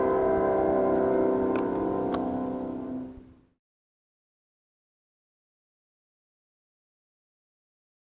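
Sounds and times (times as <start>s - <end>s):
wedding music on piano: 0.0s - 3.4s.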